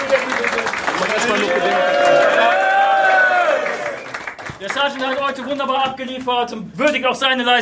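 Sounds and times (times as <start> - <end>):
crowd cheering and shouting: 1.1 - 4.1
speech: 4.6 - 7.6.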